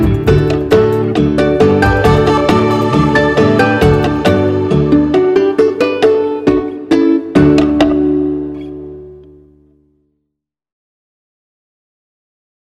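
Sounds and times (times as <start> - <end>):
acoustic music: 0.0 - 10.0.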